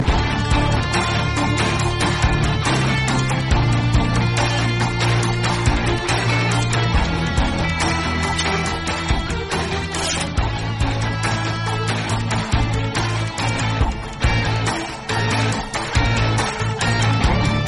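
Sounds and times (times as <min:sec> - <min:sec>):
background music: 0:00.0 - 0:17.6.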